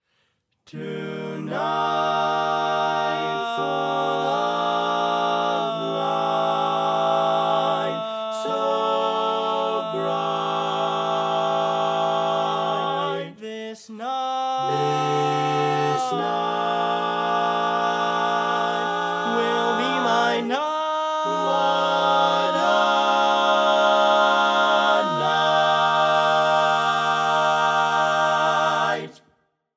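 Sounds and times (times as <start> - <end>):
barbershop tenor singing: 0.7 - 29.2.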